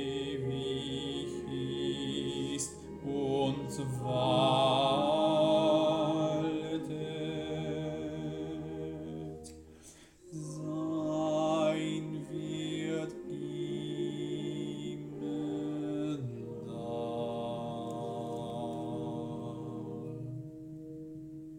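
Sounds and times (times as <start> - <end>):
alto voices singing a sanctus: 0.0 - 21.5.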